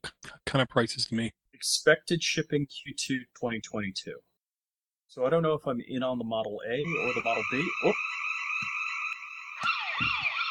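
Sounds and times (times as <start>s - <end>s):
speech: 0.5s - 4.3s, 5.1s - 8.1s
house alarm blaring with a shrill electronic tone and warble: 6.8s - 10.4s.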